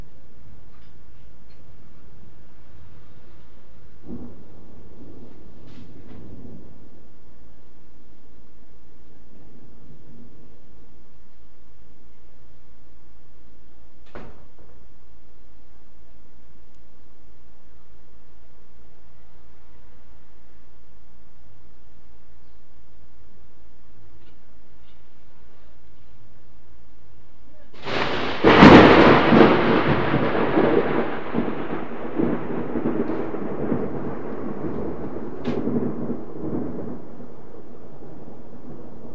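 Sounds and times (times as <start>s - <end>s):
thunder: 2.5s - 8.6s, 27.7s - 39.1s.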